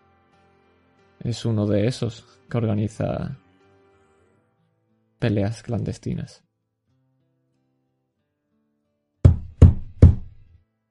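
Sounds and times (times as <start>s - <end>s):
speech: 1.2s - 3.4s, 5.2s - 6.4s
hollow knocks on a door: 9.3s - 10.5s.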